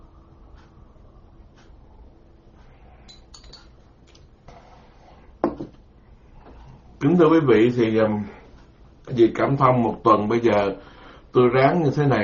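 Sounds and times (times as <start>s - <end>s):
low steady hum: 0.0s - 12.2s
glass clinking: 3.0s - 4.2s
speech: 7.0s - 8.4s, 9.1s - 12.2s.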